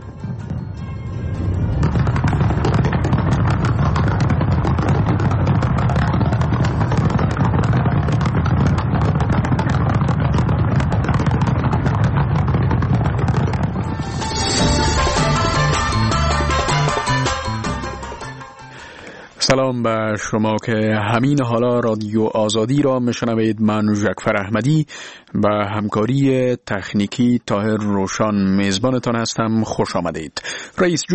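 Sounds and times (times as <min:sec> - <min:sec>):
musical tone: 0:00.0 - 0:03.1, 0:13.8 - 0:19.0
fireworks at Olympic opening ceremony crackling and booming: 0:00.0 - 0:18.8
speech: 0:19.5 - 0:31.1.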